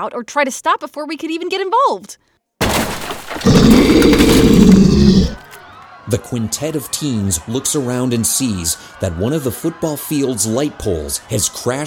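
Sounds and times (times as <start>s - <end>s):
speech: 0.0s - 5.4s, 6.1s - 11.8s
creature roar: 2.6s - 5.4s.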